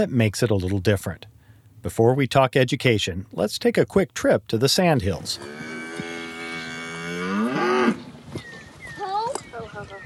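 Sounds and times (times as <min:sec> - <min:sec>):
speech: 0:00.0 - 0:05.8
calf mooing on a cattle ranch during calving season: 0:05.4 - 0:08.0.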